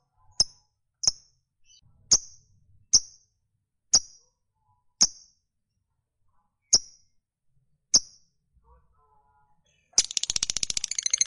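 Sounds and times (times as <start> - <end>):
lovebird chirping: 0.2 - 3.2, 6.6 - 7.0, 10.0 - 11.2.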